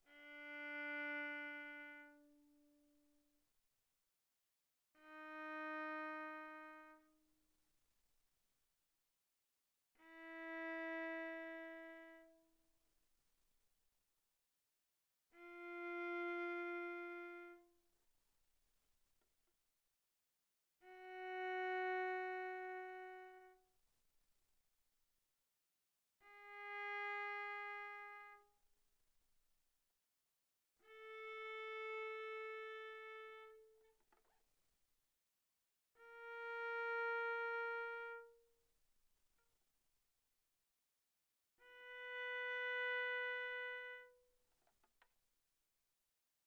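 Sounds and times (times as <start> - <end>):
viola bowed arco on the D string pianissimo: 0.1 - 2.8, 5.0 - 7.2, 10.0 - 12.5, 15.4 - 17.7, 20.8 - 23.6, 26.2 - 28.5, 30.8 - 34.3, 36.0 - 38.5, 41.6 - 45.0.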